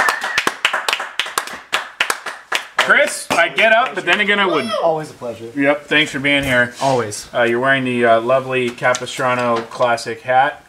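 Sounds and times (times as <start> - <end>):
audience applause: 0.0 - 4.3
speech: 2.9 - 10.6.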